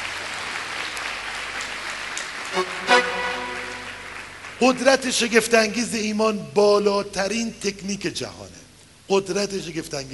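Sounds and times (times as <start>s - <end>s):
audience clapping at a self-confidence seminar: 0.0s - 5.4s
speech: 4.6s - 10.1s.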